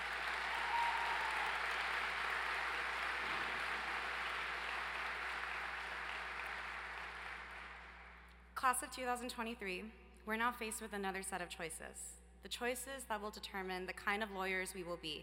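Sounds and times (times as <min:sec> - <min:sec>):
audience applause at graduation ceremony: 0:00.0 - 0:08.2
speech: 0:08.6 - 0:15.2.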